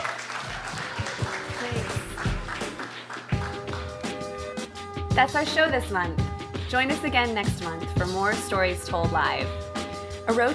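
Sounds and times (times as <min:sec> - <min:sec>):
audience applause: 0:00.0 - 0:04.0
speech: 0:05.2 - 0:09.6, 0:10.3 - 0:10.5.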